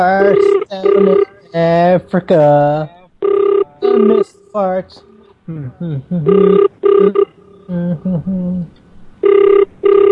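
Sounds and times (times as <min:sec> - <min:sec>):
telephone ringing: 0:00.0 - 0:01.4, 0:03.2 - 0:04.3, 0:06.3 - 0:07.7, 0:09.2 - 0:10.1
wavering vocal sounds: 0:00.0 - 0:02.9, 0:03.7 - 0:08.8
speech: 0:00.0 - 0:03.0, 0:03.8 - 0:10.1.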